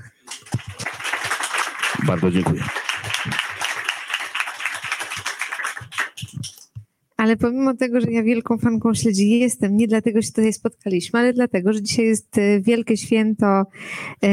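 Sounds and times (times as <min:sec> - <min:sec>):
audience applause: 0:00.0 - 0:06.7
speech: 0:02.0 - 0:02.8, 0:07.2 - 0:14.3.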